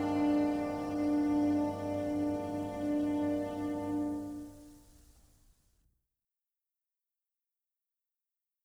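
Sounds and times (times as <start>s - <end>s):
lonely to dramatic library music: 0.0s - 4.8s.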